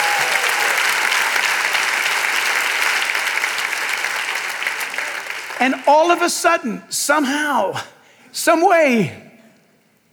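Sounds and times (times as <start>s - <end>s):
audience applauding and cheering: 0.0s - 6.8s
speech: 5.6s - 9.2s.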